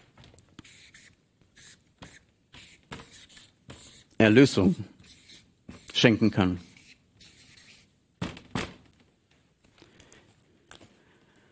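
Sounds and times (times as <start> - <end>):
pen or marker strokes scratching across a writing surface: 0.6 - 6.0, 6.6 - 7.9
speech: 4.2 - 5.0, 6.0 - 6.7.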